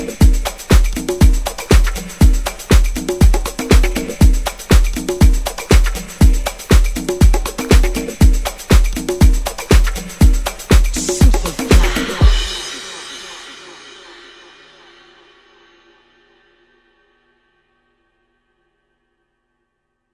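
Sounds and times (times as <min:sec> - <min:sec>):
1970s disco dub music: 0:00.0 - 0:14.2.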